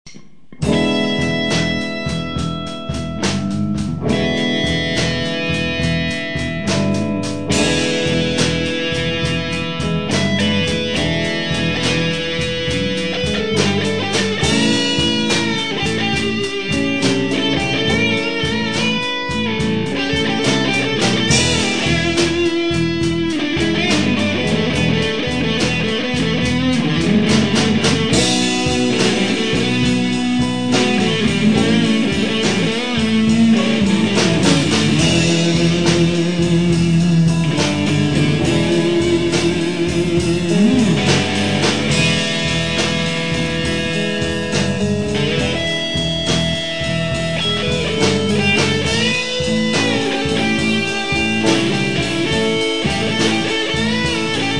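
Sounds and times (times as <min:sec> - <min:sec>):
blues music: 0:00.0 - 0:54.5.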